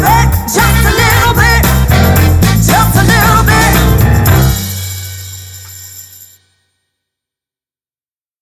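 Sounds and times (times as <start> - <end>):
rock pop function band playing: 0.0 - 5.7.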